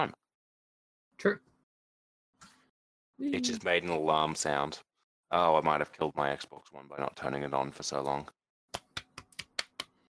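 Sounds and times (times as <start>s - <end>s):
speech: 0.0s - 0.2s, 1.2s - 1.5s, 3.2s - 8.8s
hand clapping: 8.7s - 10.0s.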